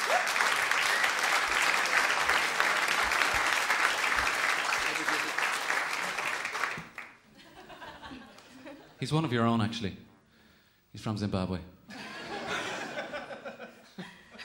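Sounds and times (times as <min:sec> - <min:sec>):
audience applause at a live show honoring the sound engineer: 0:00.0 - 0:07.2
laughter: 0:07.3 - 0:09.0, 0:11.9 - 0:14.4
speech: 0:09.0 - 0:10.0, 0:11.0 - 0:11.8.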